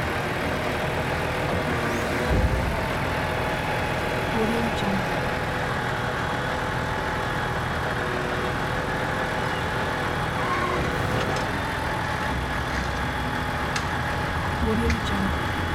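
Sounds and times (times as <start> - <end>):
construction site truck engine: 0.0 - 15.7.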